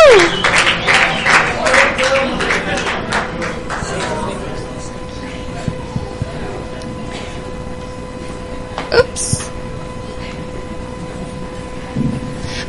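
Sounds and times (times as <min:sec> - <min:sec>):
audience applause: 0:00.0 - 0:04.8
scattered voices: 0:01.6 - 0:12.6.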